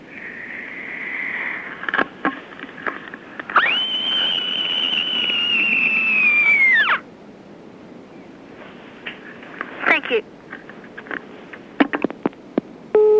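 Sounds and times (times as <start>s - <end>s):
faint noise: 0.0s - 13.1s
child screaming: 5.3s - 7.0s.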